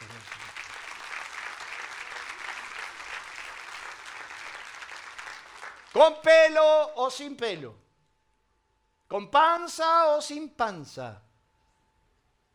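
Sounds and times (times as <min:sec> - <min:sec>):
audience applause: 0:00.0 - 0:06.0
speech: 0:06.0 - 0:07.8, 0:09.1 - 0:11.2.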